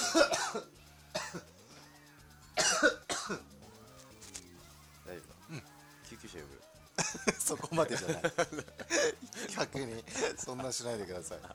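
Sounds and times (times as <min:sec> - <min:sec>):
harsh coughing fit: 0:00.0 - 0:01.5, 0:02.6 - 0:03.5
speech: 0:00.1 - 0:00.7, 0:07.8 - 0:08.8, 0:09.8 - 0:11.5
laughter: 0:07.0 - 0:11.5.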